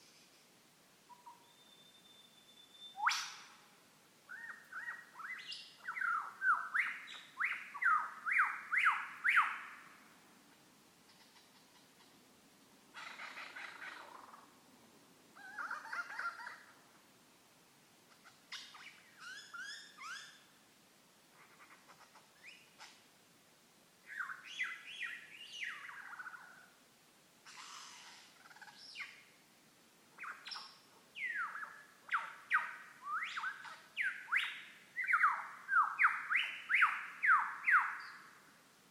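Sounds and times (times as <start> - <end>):
lyrebird: 1.1 - 2.2, 2.8 - 3.7, 4.3 - 10.0, 11.1 - 12.2, 12.9 - 14.5, 15.4 - 16.8, 18.1 - 20.5, 21.3 - 23.1, 24.1 - 26.8, 27.4 - 29.4, 30.2 - 38.4.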